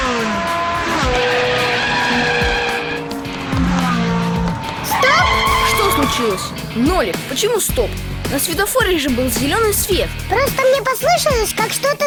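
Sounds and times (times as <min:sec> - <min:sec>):
tires squealing and skidding while turning: 0:00.0 - 0:08.2
car engine revving and accelerating: 0:00.0 - 0:10.3
speech: 0:06.2 - 0:12.0.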